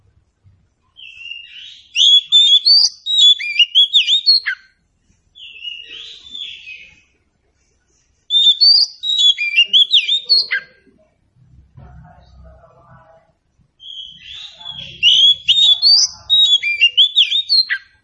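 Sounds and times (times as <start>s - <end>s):
faint low noise: 0.0s - 18.0s
Oriental magpie-robin singing whistled phrases: 1.0s - 4.7s, 5.4s - 7.1s, 8.3s - 10.8s, 13.8s - 17.9s.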